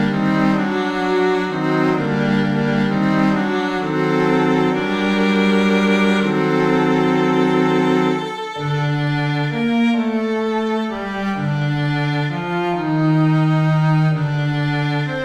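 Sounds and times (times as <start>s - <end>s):
Gm strings: 0.0s - 15.2s.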